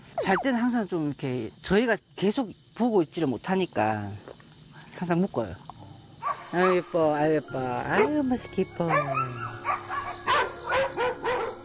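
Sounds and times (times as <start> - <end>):
speech: 0.2 - 4.3, 5.0 - 5.7, 6.5 - 9.4
dogs barking and yipping at night: 7.9 - 8.2, 8.8 - 11.6.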